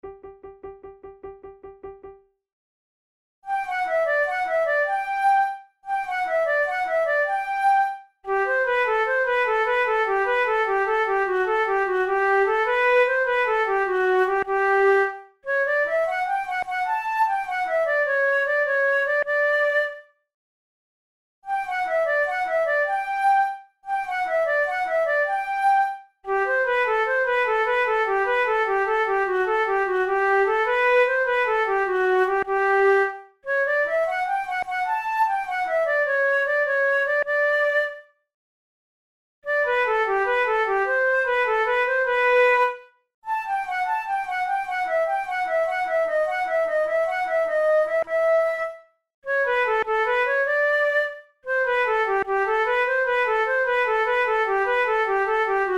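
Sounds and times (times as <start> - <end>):
vivace flute tunes: 3.5 - 20.2, 21.5 - 38.2, 39.5 - 55.7.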